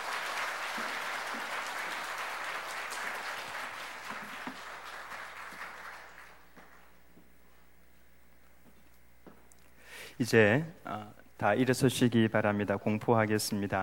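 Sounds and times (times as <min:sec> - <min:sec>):
audience applause: 0:00.0 - 0:06.9
speech: 0:10.2 - 0:13.8.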